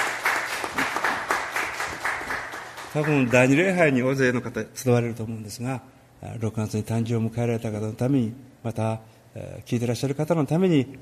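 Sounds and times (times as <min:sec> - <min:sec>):
audience applause: 0:00.0 - 0:03.7
speech: 0:02.9 - 0:11.0.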